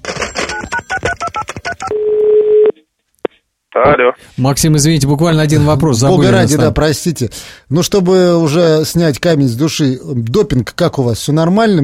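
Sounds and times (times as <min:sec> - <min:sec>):
telephone dialing tones for a callback: 0:00.2 - 0:02.8
speech: 0:03.8 - 0:11.8.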